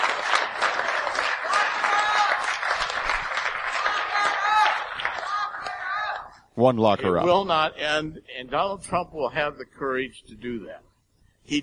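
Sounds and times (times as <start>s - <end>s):
audience clapping: 0.0s - 6.3s
speech: 6.6s - 10.9s, 11.5s - 11.6s.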